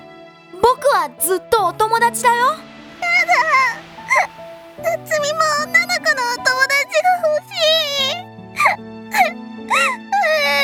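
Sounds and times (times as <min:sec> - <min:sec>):
speech: 0:00.9 - 0:02.7
young girl crying in wailing sobs: 0:03.0 - 0:10.6.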